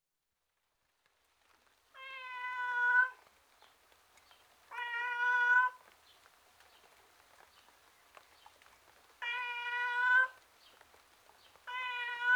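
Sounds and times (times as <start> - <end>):
domestic tom cat meowing outside: 4.7 - 5.8, 9.2 - 10.4, 11.7 - 12.3.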